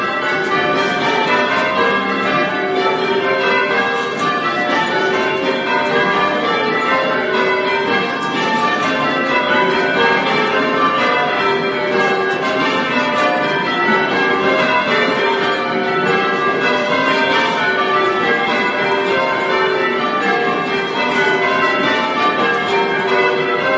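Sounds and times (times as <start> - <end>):
church bells ringing a Grandsire peal: 0.0 - 23.7.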